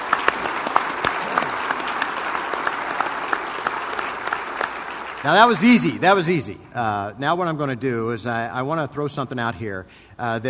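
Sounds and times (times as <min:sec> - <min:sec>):
room full of people applauding: 0:00.0 - 0:06.5
speech: 0:05.2 - 0:10.4.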